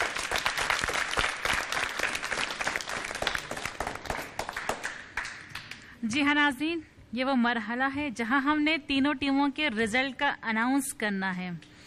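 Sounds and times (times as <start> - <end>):
loud audience applause: 0.0 - 5.8
speech: 6.0 - 11.7.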